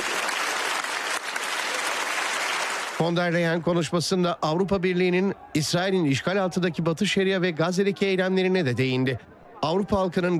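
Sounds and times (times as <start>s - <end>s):
standing ovation for von der Leyen and Canadian Prime Minister Carney: 0.0s - 3.6s
speech: 3.0s - 10.3s.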